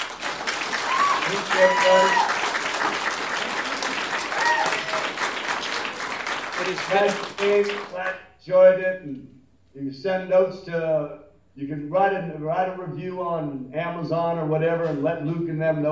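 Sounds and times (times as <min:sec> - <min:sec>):
audience applause: 0:00.0 - 0:08.1
speech: 0:01.3 - 0:03.1, 0:06.6 - 0:15.9.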